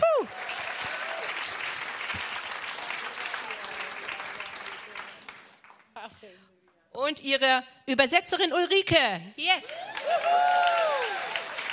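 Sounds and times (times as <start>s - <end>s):
crowd applause for a preacher at a church conference: 0.0s - 6.0s, 9.8s - 11.7s
speech: 7.1s - 10.6s.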